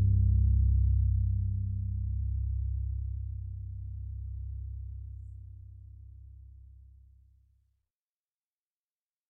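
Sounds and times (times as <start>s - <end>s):
dual upright bass: 0.0s - 6.8s.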